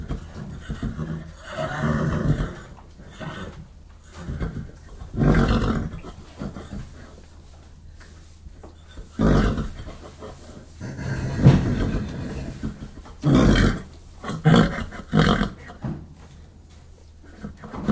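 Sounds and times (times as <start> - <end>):
horse whickering in stables: 0.0 - 7.1, 9.1 - 15.8.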